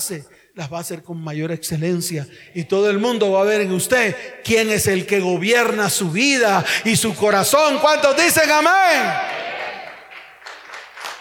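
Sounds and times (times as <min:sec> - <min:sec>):
speech: 0:00.0 - 0:09.5
audience applauding: 0:08.9 - 0:11.1.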